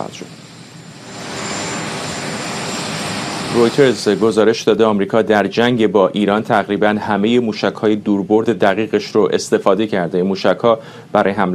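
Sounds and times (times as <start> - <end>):
speech: 0.0 - 0.5, 3.5 - 11.5
presidential helicopter at Joint Base Andrews in Maryland: 0.0 - 5.3.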